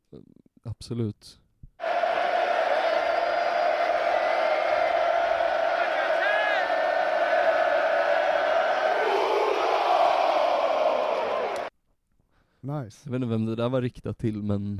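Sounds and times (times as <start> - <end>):
speech: 0.1 - 1.4, 12.7 - 14.7
Mexican football supporters chanting: 1.8 - 11.7
crowd cheering: 1.8 - 11.7.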